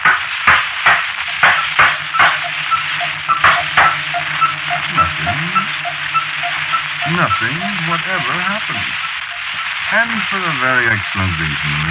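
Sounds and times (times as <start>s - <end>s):
hammer striking a small device: 0.0s - 8.4s
faint low hum: 1.2s - 11.8s
speech: 7.2s - 11.8s.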